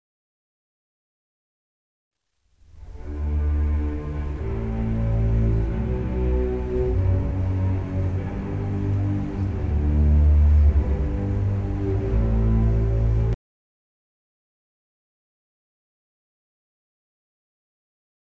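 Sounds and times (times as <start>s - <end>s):
ostinato: 2.6s - 13.4s.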